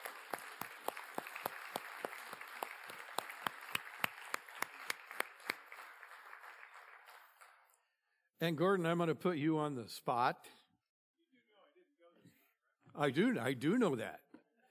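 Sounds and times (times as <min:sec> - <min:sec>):
applause welcoming guests to the stage: 0:00.0 - 0:07.9
speech: 0:08.4 - 0:10.6, 0:13.0 - 0:14.2.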